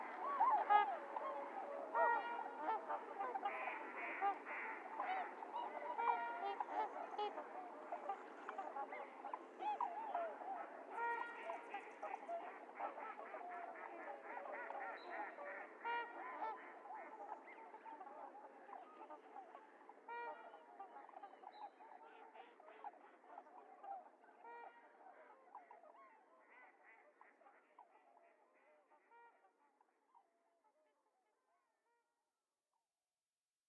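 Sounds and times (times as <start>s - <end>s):
trumpeter swans calling as a flock: 0.0s - 24.8s.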